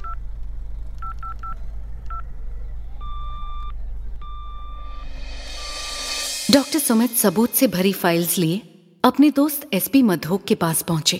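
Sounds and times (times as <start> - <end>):
constant low hum: 0.0 - 8.1
telephone keypad dialing tones: 3.0 - 5.0
speech: 6.5 - 11.1.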